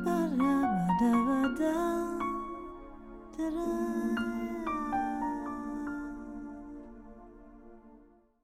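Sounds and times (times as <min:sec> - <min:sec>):
Latin singer singing in Los Angeles: 0:00.0 - 0:02.8, 0:03.4 - 0:07.0.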